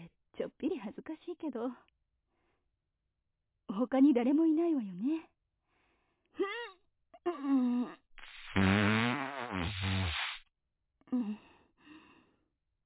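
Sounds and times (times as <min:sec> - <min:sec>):
speech: 0:00.5 - 0:02.0, 0:03.8 - 0:05.3, 0:07.2 - 0:08.0, 0:08.6 - 0:08.9, 0:11.1 - 0:11.5
short vocal strains: 0:07.4 - 0:10.4
long loud buzzing fart: 0:08.2 - 0:10.4.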